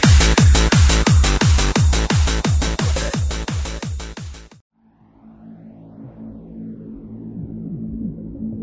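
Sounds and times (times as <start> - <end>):
acid happy hardcore music: 0.0 - 4.6.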